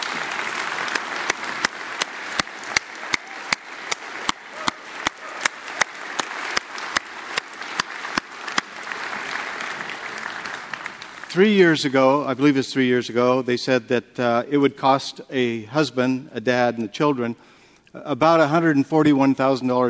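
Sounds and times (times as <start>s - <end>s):
audience applause: 0.0s - 11.4s
speech: 11.4s - 19.8s.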